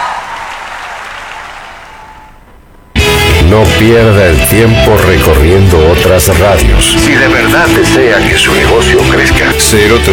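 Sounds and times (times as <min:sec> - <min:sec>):
crowd applause: 0:00.0 - 0:02.4
speech: 0:03.5 - 0:10.1.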